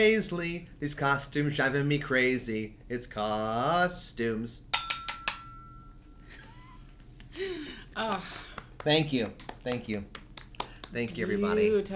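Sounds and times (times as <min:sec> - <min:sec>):
speech: 0:00.0 - 0:04.7, 0:07.4 - 0:10.2, 0:10.9 - 0:11.9
toy xylophone playing: 0:04.8 - 0:05.9.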